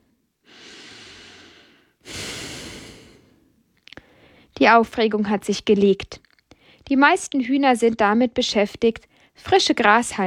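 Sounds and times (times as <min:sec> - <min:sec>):
fuller, louder inhale: 0:00.4 - 0:04.5
slow deep exhale: 0:00.5 - 0:04.5
speech: 0:04.6 - 0:06.2, 0:06.9 - 0:10.2.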